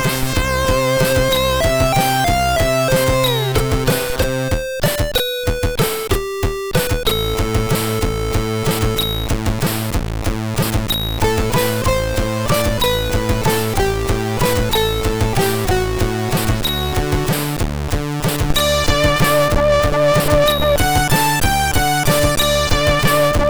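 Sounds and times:
waltz on a SID MOS6581R3 sound chip: 0.0s - 9.9s, 10.9s - 23.4s.

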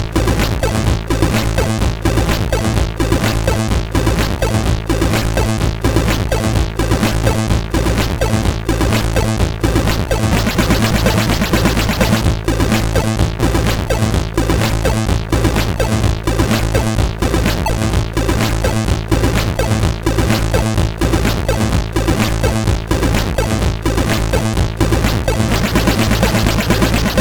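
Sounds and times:
church hymn on SID chip CSG8580R5: 0.0s - 27.1s.

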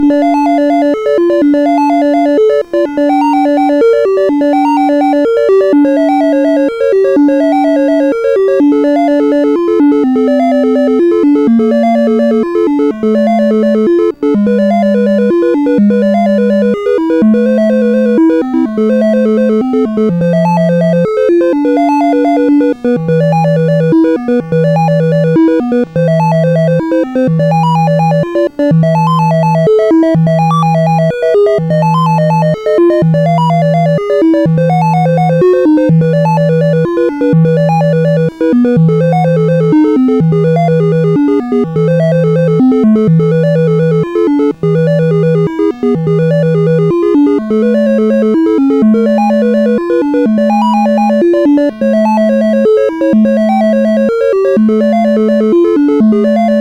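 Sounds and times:
SID CSG8580R5 chip game music: 0.0s - 56.5s.

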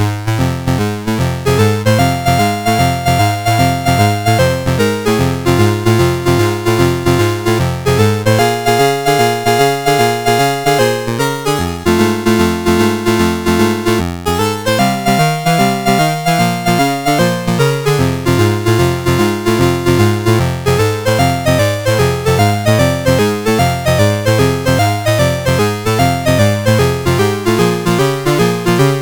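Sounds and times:
boogie woogie music: 0.2s - 29.0s.

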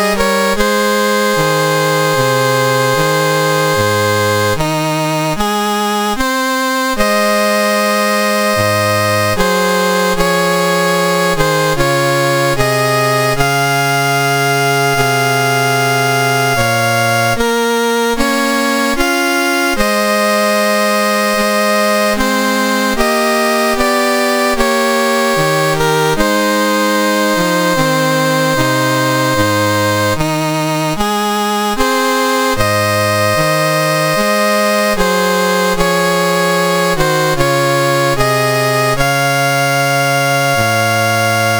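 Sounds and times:
national anthem played on MOS6581R2 sound chip: 0.0s - 41.5s.

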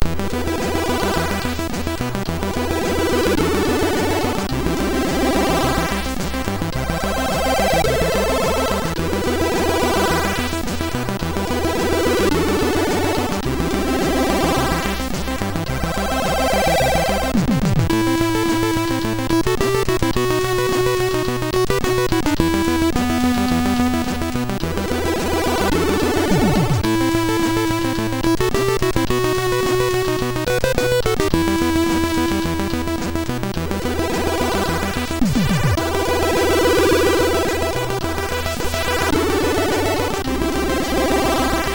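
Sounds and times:
chiptune music on SID MOS6581R2 chip: 0.0s - 41.7s.

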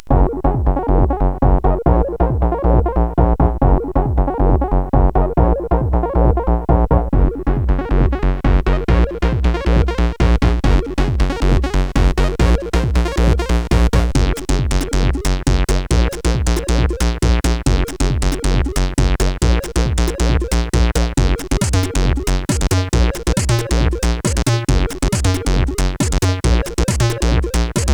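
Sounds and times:
house music on a SID CSG8580R5 chip: 0.0s - 27.9s.

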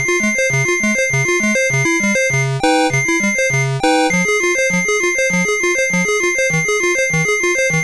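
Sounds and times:
MOS 8580 sound chip music: 0.1s - 7.8s.

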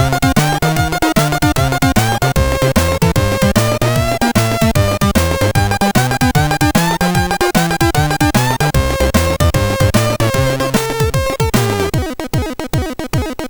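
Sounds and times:
boogie woogie chiptune on MOS6581R4 SID chip: 0.0s - 13.4s.

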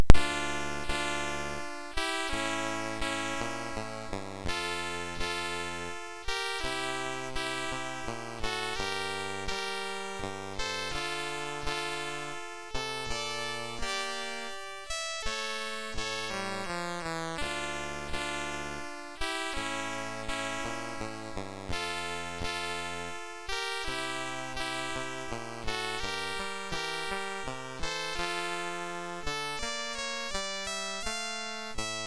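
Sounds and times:
chiptune dance piece on MOS6581R3 SID chip: 0.0s - 32.0s.

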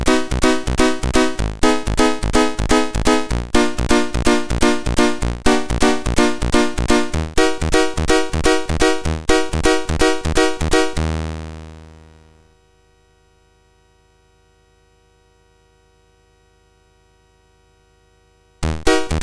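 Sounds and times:
piano piece on a MOS6581R4 SID chip: 0.0s - 11.7s, 18.6s - 19.2s.

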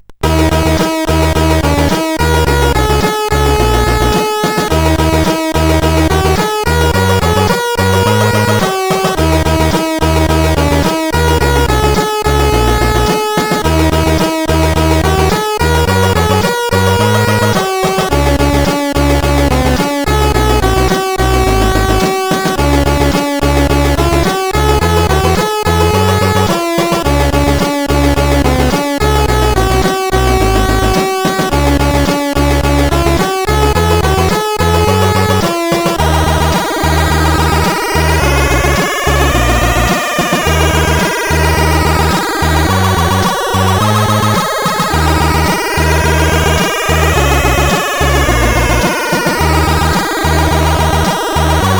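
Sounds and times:
SID CSG8580R5 chip music: 0.1s - 51.7s.

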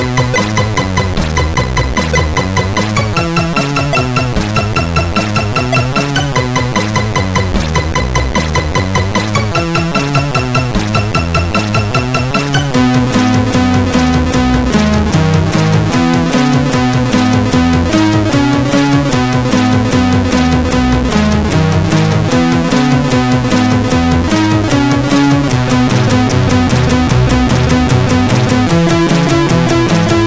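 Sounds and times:
SID CSG8580R5 chip music: 0.0s - 30.2s.

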